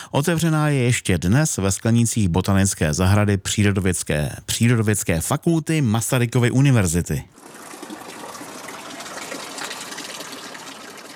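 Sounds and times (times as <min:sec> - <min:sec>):
speech: 0:00.1 - 0:07.6
fountain water splashing in a greenhouse: 0:07.4 - 0:11.1.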